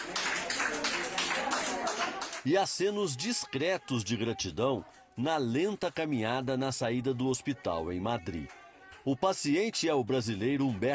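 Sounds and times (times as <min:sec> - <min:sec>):
applause for recovered patient leaving hospital: 0:00.0 - 0:02.8
speech: 0:02.4 - 0:10.9.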